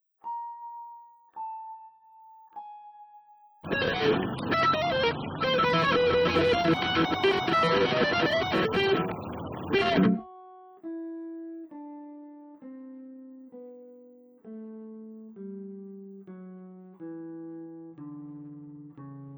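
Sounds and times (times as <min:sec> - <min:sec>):
guitar: 0:03.6 - 0:10.2.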